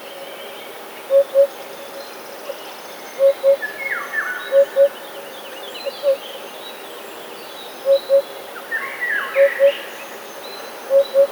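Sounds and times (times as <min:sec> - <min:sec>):
Eurasian hoopoe hooting: 0:01.1 - 0:01.5, 0:03.2 - 0:03.7, 0:04.5 - 0:04.9, 0:07.9 - 0:08.3, 0:09.4 - 0:09.7, 0:10.9 - 0:11.2.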